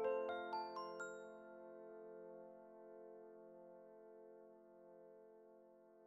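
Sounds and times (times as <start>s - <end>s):
handbells: 0.2s - 1.4s.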